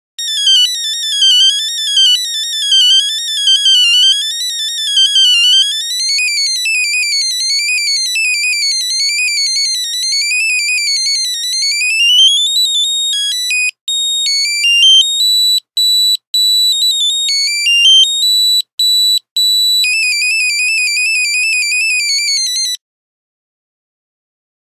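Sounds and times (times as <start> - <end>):
Nokia phone buzzer: 0.2 - 22.8.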